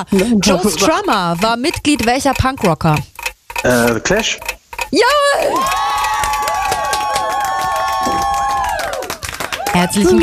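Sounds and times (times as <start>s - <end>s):
speech: 0.0s - 5.9s, 9.8s - 10.2s
cheering: 5.1s - 10.2s
applause: 6.2s - 10.2s.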